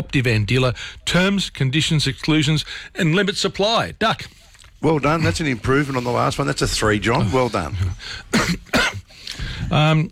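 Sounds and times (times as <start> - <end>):
speech: 0.0 - 10.1
person coughing harshly: 8.3 - 9.2.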